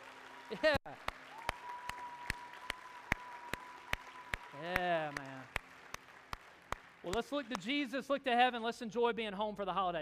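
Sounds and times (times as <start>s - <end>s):
church congregation applauding welcoming new members: 0.0s - 8.0s
speech: 0.5s - 1.2s, 4.6s - 5.3s, 7.0s - 9.9s.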